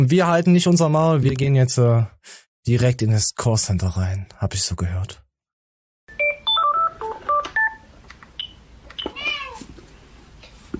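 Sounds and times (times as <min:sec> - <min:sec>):
speech: 0:00.0 - 0:05.2
telephone keypad dialing tones: 0:06.1 - 0:07.8
cat meowing: 0:09.1 - 0:09.7.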